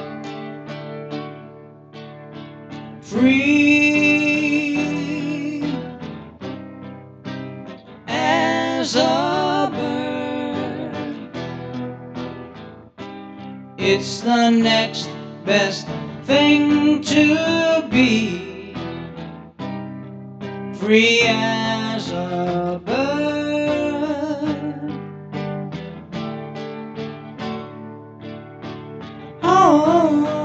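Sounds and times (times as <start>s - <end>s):
vocals: 2.7s - 6.5s, 7.8s - 11.9s, 13.8s - 19.8s, 20.7s - 25.5s, 29.3s - 30.4s.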